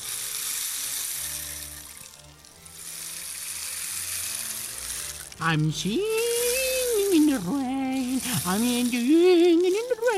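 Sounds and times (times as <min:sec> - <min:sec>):
rainstick: 0:00.0 - 0:10.1
speech: 0:05.4 - 0:06.2, 0:07.1 - 0:10.1.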